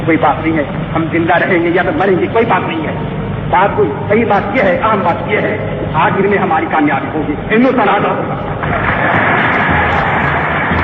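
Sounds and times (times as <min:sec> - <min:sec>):
speech: 0:00.0 - 0:09.6
thunderous applause in archival recording: 0:08.4 - 0:10.8.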